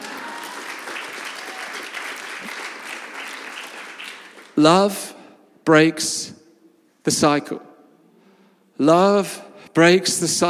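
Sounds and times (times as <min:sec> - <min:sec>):
audience applause: 0:00.0 - 0:04.6
speech: 0:04.6 - 0:06.4, 0:07.1 - 0:07.7, 0:08.8 - 0:10.4.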